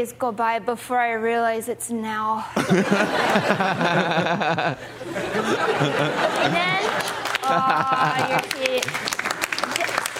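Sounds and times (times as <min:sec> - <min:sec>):
speech: 0:00.0 - 0:09.2
laughter: 0:02.6 - 0:09.0
brief audience applause: 0:05.8 - 0:10.1.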